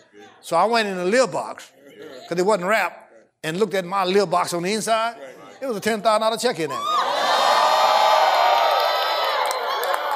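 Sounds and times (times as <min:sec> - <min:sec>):
speech: 0:00.4 - 0:07.0
crowd cheering and whooping: 0:06.7 - 0:10.1.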